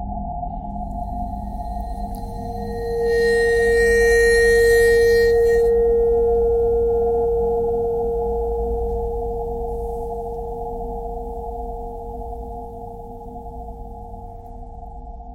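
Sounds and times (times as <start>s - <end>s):
bowed metal: 1.0s - 14.4s.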